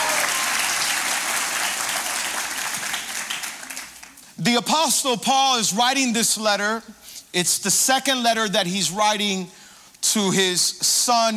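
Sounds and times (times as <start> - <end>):
church congregation applause at Calvary: 0.0 - 4.4
speech: 4.4 - 11.3.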